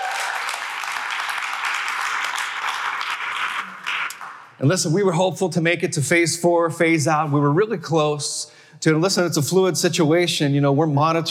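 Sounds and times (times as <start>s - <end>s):
church congregation clapping during a service: 0.0s - 5.0s
speech: 4.6s - 11.2s.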